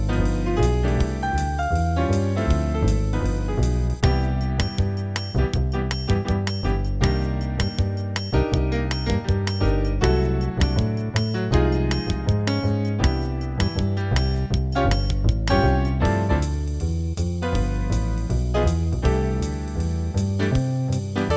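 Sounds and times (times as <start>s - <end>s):
jazz piano play-along in C: 0.0s - 21.3s.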